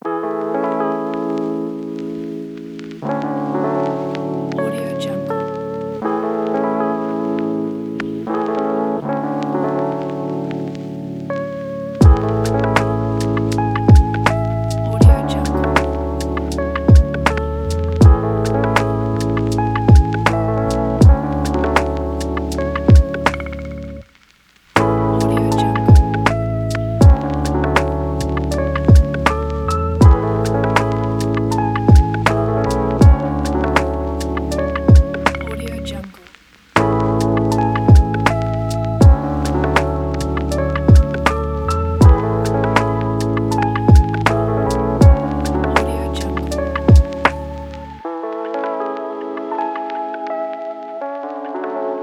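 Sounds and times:
chill lo-fi music: 0.0s - 52.0s.

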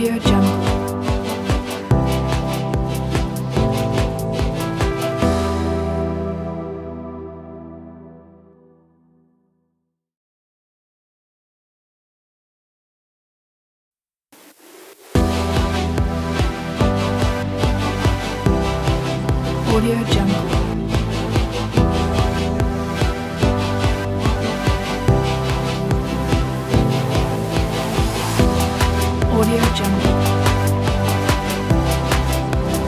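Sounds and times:
future ambient electro drum kit: 0.0s - 6.3s, 15.0s - 32.8s.

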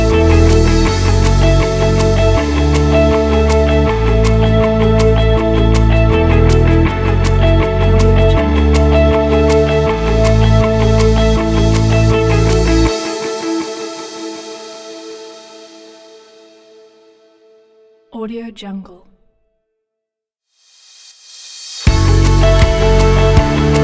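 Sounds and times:
inspirational guitar music: 0.0s - 15.6s, 21.9s - 23.8s.

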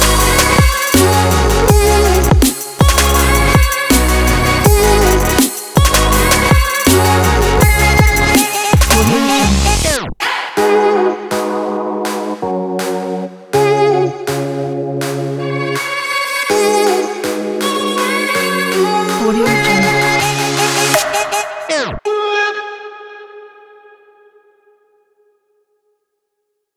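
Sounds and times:
future hiphop bass: 0.0s - 15.8s, 16.5s - 22.0s.

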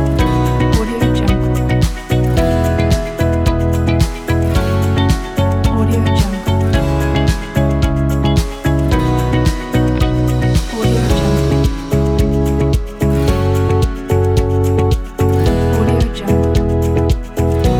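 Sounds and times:
inspiring corporate success glockenspiel music: 0.0s - 17.7s.

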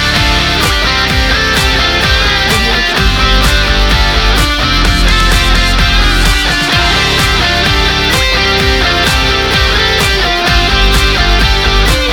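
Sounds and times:
energetic spring pop rock music: 0.0s - 12.1s.

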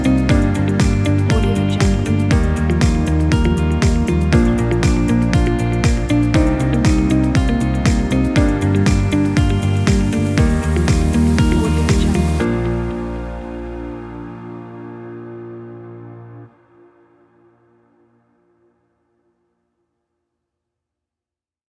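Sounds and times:
motivational uplifting corporate music: 0.0s - 16.5s.

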